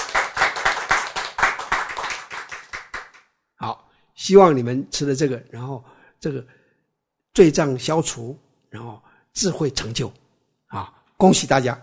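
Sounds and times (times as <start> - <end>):
audience clapping hands: 0.0 - 3.3
speech: 3.6 - 6.6, 7.4 - 11.8.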